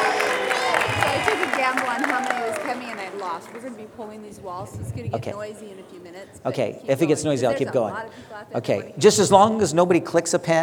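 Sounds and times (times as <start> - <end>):
cheering: 0.0 - 4.0
audience applause: 0.0 - 4.3
overlapping voices: 0.0 - 4.6
speech: 1.7 - 10.6.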